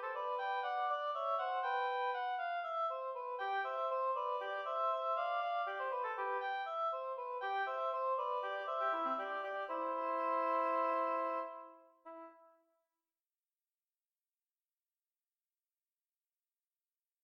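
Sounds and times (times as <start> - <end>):
oboe duet: 0.0 - 12.6.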